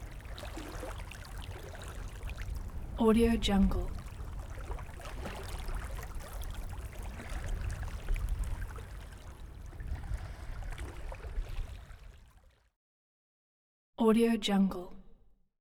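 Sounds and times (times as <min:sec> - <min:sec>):
distant ship: 0:00.0 - 0:12.2
calm ocean sea waves on a beach: 0:00.0 - 0:12.7.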